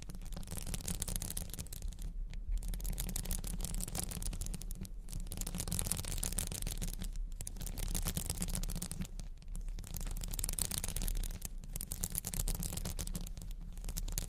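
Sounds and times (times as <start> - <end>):
diamonds, crystals, beads, ice and jewels tapping and scratching: 0.0 - 14.2.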